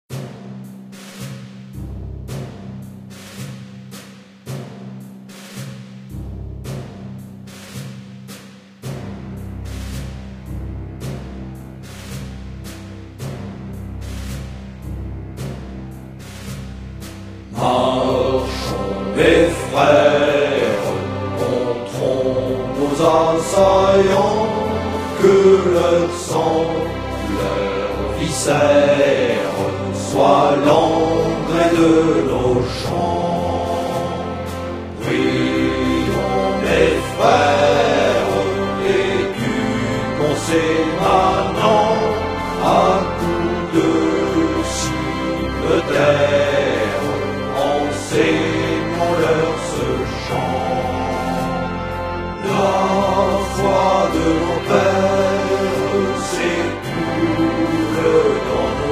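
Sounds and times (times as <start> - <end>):
hymn: 17.5 - 58.9.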